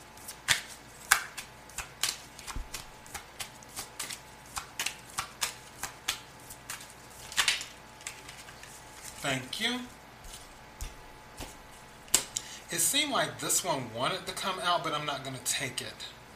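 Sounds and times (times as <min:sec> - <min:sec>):
playing cards being shuffled and drawn: 0:00.2 - 0:09.3, 0:10.2 - 0:12.4
speech: 0:09.3 - 0:10.0, 0:12.7 - 0:16.2.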